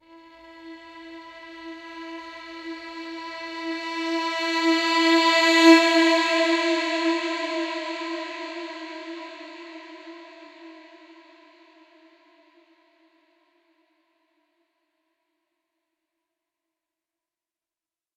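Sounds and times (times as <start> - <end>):
violin: 0.0 - 10.9.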